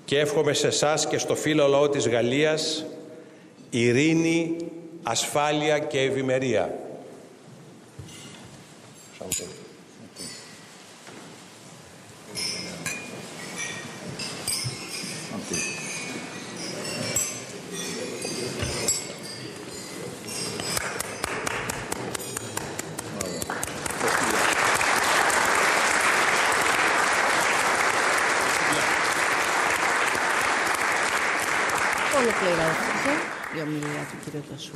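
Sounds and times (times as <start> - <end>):
speech: 0.1 - 3.0, 3.7 - 6.9, 9.3 - 9.6, 33.7 - 34.7
glasses clinking in a toast: 9.0 - 10.7, 12.3 - 21.5
crowd applause: 20.8 - 34.2.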